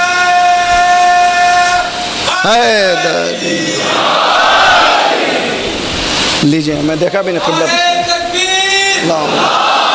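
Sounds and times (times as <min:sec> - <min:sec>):
crowd shouting a slogan together: 0:00.0 - 0:05.7, 0:08.6 - 0:09.9
speech: 0:02.4 - 0:04.6, 0:06.4 - 0:08.4, 0:09.0 - 0:09.6.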